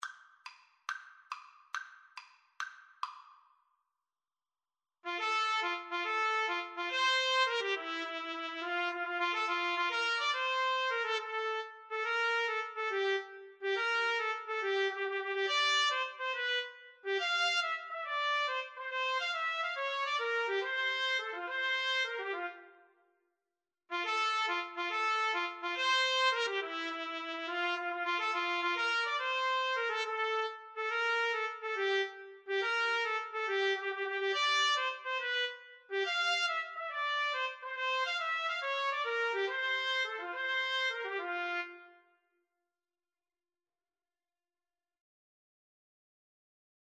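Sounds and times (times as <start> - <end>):
trumpet duet: 5.1 - 22.8, 23.9 - 42.1.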